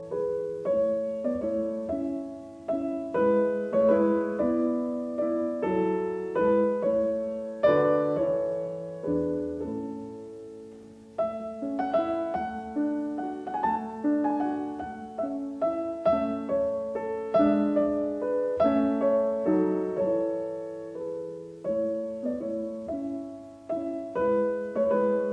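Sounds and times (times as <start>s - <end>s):
piano sonata in A major theme and variations: 0.0s - 25.3s.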